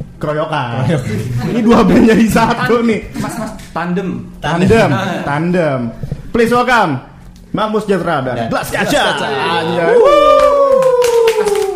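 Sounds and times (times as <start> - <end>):
speech: 0.2 - 10.6
loud sustained howling whoop: 9.6 - 11.7
scattered audience applause: 10.0 - 11.7.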